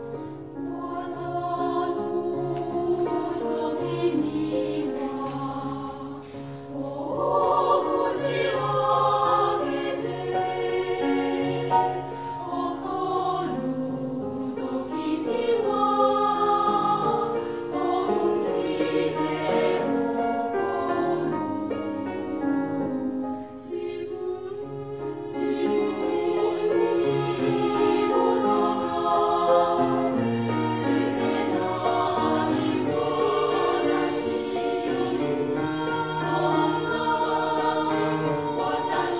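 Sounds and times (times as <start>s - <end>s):
female chorus singing: 0.6s - 39.1s.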